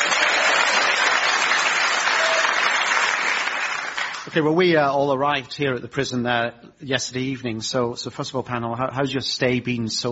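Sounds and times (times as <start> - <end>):
crowd clapping: 0.0 - 4.4
speech: 4.4 - 10.1.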